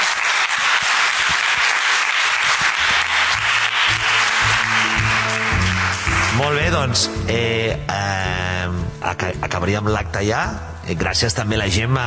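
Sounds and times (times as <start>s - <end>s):
audience applause: 0.0s - 7.0s
speech: 6.4s - 12.0s.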